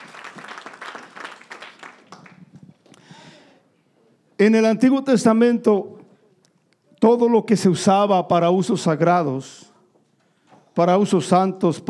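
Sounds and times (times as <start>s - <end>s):
audience applause: 0.0s - 2.6s
speech: 4.4s - 6.0s, 7.0s - 9.7s, 10.8s - 11.8s.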